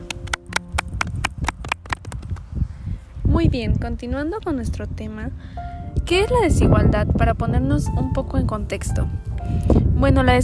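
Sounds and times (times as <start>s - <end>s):
audience applause: 0.0s - 2.2s
speech: 3.4s - 10.4s.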